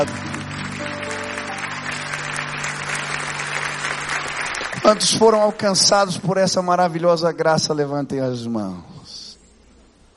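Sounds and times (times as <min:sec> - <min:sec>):
speech: 0:00.0 - 0:00.9, 0:04.8 - 0:08.9
audience applause: 0:00.0 - 0:06.1.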